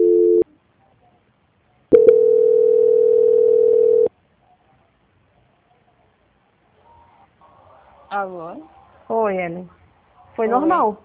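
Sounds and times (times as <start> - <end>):
telephone line tones during a call transfer: 0.0 - 0.4, 1.9 - 4.1
speech: 8.2 - 9.8, 10.4 - 11.0.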